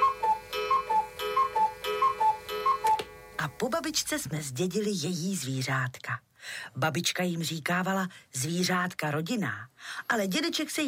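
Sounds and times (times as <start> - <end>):
cuckoo clock ticking: 0.0 - 3.1
speech: 3.6 - 10.8.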